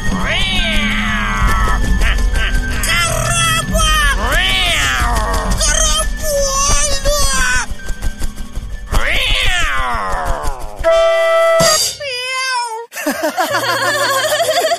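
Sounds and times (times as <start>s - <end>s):
cat meowing and caterwauling: 0.1s - 7.3s, 8.9s - 12.9s
laughter: 1.2s - 3.7s, 12.9s - 14.7s.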